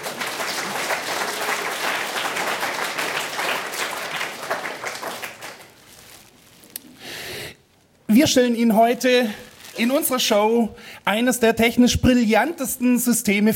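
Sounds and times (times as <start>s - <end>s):
studio audience applause: 0.0s - 5.9s
speech: 8.1s - 13.5s.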